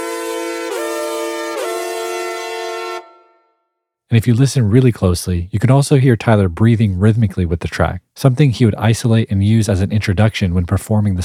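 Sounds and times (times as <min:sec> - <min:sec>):
brassy slightly shrill synth chords: 0:00.0 - 0:03.6
speech: 0:04.1 - 0:11.2.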